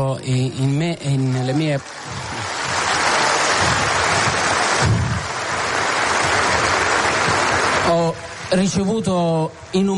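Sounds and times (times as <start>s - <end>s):
speech: 0.0s - 2.3s, 7.9s - 9.9s
audience applause: 1.1s - 8.2s.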